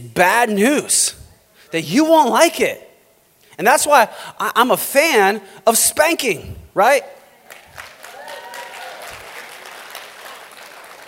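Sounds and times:
speech: 0.0s - 2.9s, 3.6s - 7.2s
audience applause: 7.5s - 11.0s.

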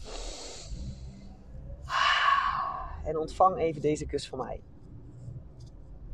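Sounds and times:
deep breath in and out: 0.0s - 3.1s
speech: 3.1s - 4.7s.

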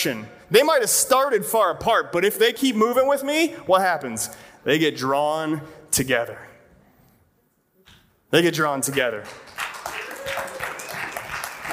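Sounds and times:
speech: 0.0s - 6.5s, 8.3s - 9.6s
audience applause: 9.2s - 11.7s.

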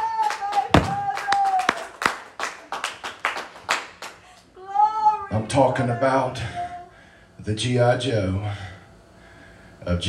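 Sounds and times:
audience clapping hands: 0.0s - 4.4s
speech: 5.6s - 6.6s, 7.4s - 8.7s, 9.8s - 10.0s.

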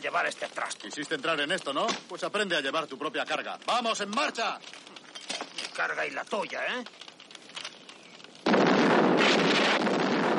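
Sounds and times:
speech: 0.0s - 7.0s
burning jeep exploding in a 1970 World War II film: 8.4s - 10.3s.

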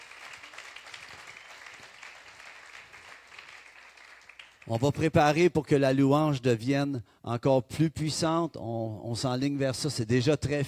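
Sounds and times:
audience applause: 0.0s - 4.8s
speech: 4.7s - 10.6s.

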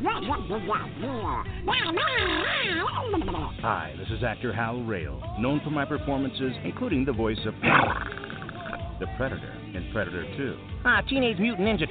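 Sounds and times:
man's voice imitating a cartoon duck: 0.0s - 3.8s, 7.6s - 9.2s
speech: 0.3s - 8.3s, 9.0s - 11.8s.

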